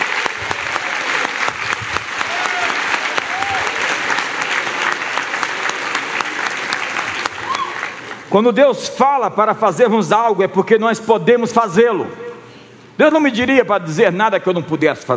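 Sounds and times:
audience applause: 0.0s - 8.3s
faint whoops or calls: 2.2s - 3.8s, 7.4s - 8.0s
speech: 8.3s - 12.3s, 13.0s - 15.1s.

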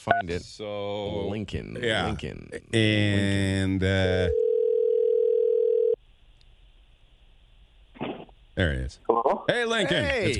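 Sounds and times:
speech: 0.0s - 4.5s, 8.6s - 10.3s
telephone dial tone: 4.3s - 6.0s.

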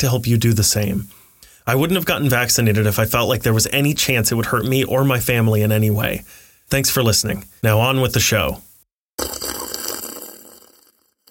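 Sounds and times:
speech: 0.0s - 9.4s
slurping tea: 9.2s - 11.2s.

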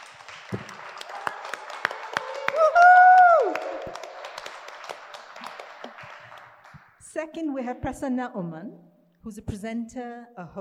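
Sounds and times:
applause: 0.0s - 7.0s
speech: 7.2s - 10.6s.

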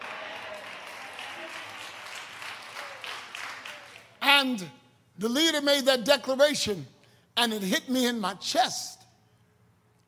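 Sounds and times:
audience clapping: 0.0s - 4.2s
speech: 4.4s - 9.0s.

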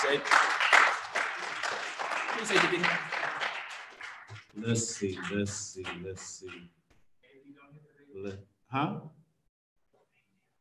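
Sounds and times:
speech: 0.0s - 0.5s, 2.4s - 3.2s, 4.6s - 6.8s, 8.2s - 9.2s
audience applause for a guest being introduced: 0.0s - 6.8s
overlapping voices: 0.0s - 6.8s.

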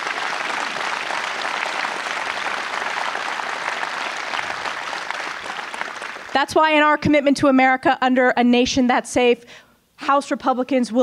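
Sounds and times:
audience round of applause: 0.0s - 6.4s
speech: 6.4s - 11.0s.

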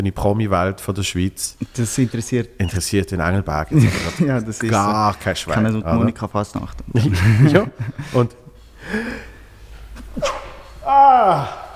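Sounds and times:
speech: 0.0s - 9.2s, 10.9s - 11.6s
laughter: 3.6s - 6.2s, 6.8s - 9.4s
inhaled gasp: 8.8s - 9.6s
sneeze: 10.0s - 11.7s.

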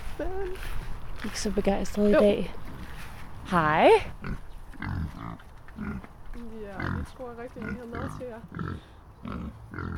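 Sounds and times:
speech: 0.2s - 2.8s, 3.5s - 9.9s
pigs grunting and snuffling in a pen: 4.2s - 9.9s.

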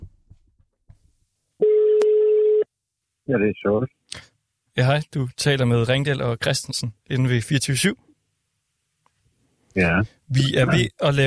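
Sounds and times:
telephone ringback tone of outgoing call: 1.6s - 2.6s
speech: 3.3s - 4.2s, 4.8s - 8.1s, 9.8s - 11.2s.

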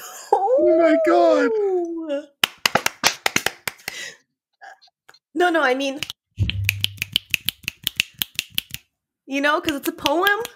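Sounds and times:
speech: 0.6s - 2.3s, 5.4s - 6.5s, 9.3s - 10.5s
finger snapping as applause: 6.0s - 8.9s.

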